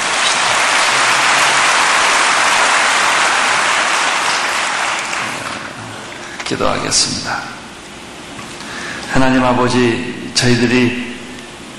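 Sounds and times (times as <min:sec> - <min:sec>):
audience clapping: 0:00.0 - 0:06.2
speech: 0:06.5 - 0:07.5, 0:09.2 - 0:11.0.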